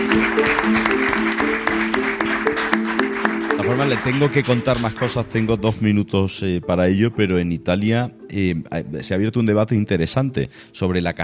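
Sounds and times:
audience applause: 0.0s - 5.4s
speech: 3.8s - 11.2s.

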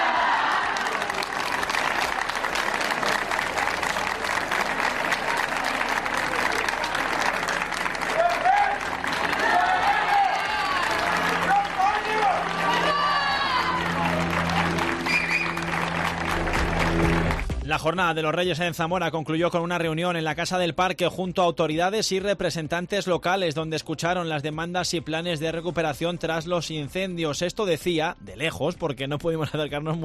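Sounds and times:
crowd applauding: 0.0s - 17.8s
speech: 17.8s - 30.0s.

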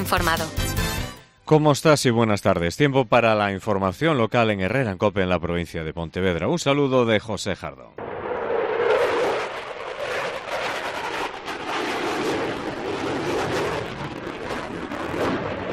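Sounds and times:
speech: 0.0s - 0.7s, 1.5s - 8.1s
Eurofighter jet flying overhead: 8.0s - 15.7s.

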